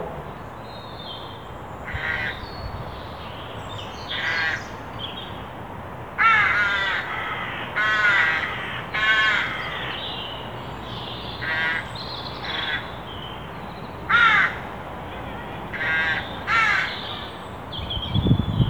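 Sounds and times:
Carrion crow Corvus corone cawing: 0:01.9 - 0:02.4, 0:04.1 - 0:04.6, 0:06.2 - 0:10.0, 0:11.4 - 0:13.0, 0:14.1 - 0:14.7, 0:15.7 - 0:17.3.

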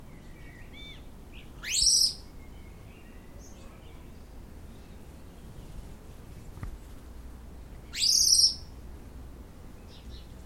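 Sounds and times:
background hiss: 0:00.0 - 0:10.4
common blackbird calling: 0:00.1 - 0:05.1, 0:07.8 - 0:08.7.

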